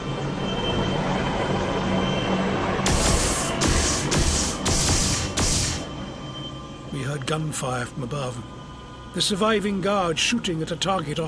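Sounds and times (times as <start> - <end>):
landing aircraft engine roar: 0.0 - 11.2
hissing bursts: 2.9 - 5.9
speech: 7.3 - 8.6, 9.2 - 11.2.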